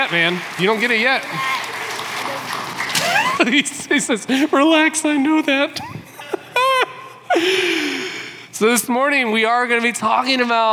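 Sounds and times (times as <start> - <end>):
speech: 0.0 - 1.6, 3.4 - 6.0, 7.4 - 7.7, 8.6 - 10.7
audience applause: 0.0 - 3.7
laughter: 2.8 - 4.9, 5.7 - 8.0.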